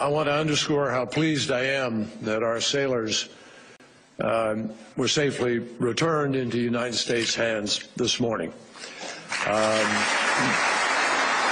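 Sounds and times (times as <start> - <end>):
speech: 0.0 - 3.4, 4.2 - 10.7
audience applause: 9.3 - 11.5.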